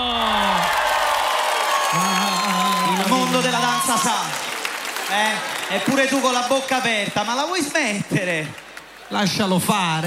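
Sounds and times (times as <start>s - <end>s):
drawn-out vocal whoops: 0.0s - 4.0s
audience applause and cheering for a dance troupe: 0.0s - 10.0s
speech: 3.3s - 4.5s, 5.1s - 10.0s.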